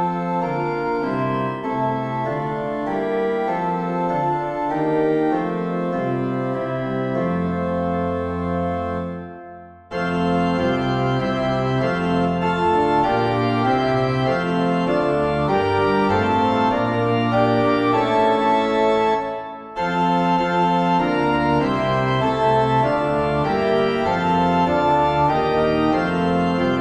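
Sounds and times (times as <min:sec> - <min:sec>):
organ at St Flavian: 0:00.0 - 0:26.8.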